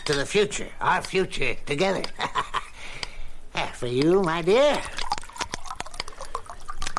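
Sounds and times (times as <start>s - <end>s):
speech: 0.0s - 2.4s, 3.6s - 5.0s
laughter: 2.1s - 2.8s
drink pouring into a glass: 4.7s - 6.9s.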